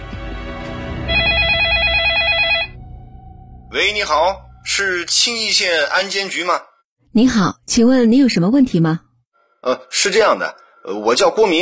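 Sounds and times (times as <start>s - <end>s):
telephone call ringing tone: 1.1s - 2.8s
speech: 3.8s - 9.0s, 9.6s - 11.5s.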